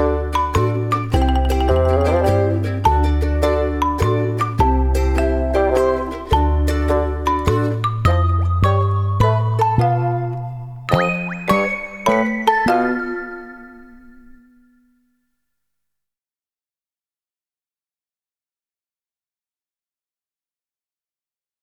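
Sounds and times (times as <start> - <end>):
easy-going marimba: 0.0 - 14.7.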